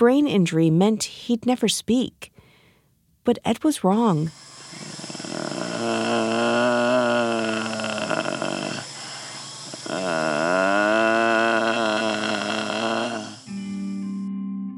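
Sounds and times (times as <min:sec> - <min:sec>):
speech: 0:00.0 - 0:02.3, 0:03.2 - 0:04.9, 0:05.8 - 0:06.3
man humming through a tracheostomy tube: 0:04.4 - 0:14.1.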